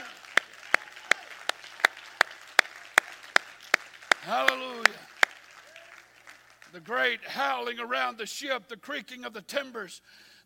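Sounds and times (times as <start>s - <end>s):
audience clapping in unison in a reverberant room: 0.0s - 7.3s
speech: 4.2s - 5.0s, 6.7s - 10.4s.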